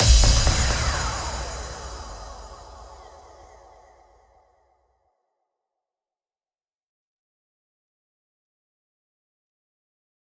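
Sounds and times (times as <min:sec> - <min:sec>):
electronic dance music: 0:00.0 - 0:03.8.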